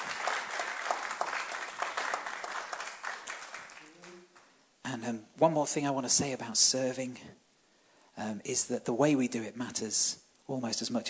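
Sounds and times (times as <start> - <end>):
audience applause: 0.0 - 4.5
speech: 5.0 - 7.4, 8.2 - 11.0.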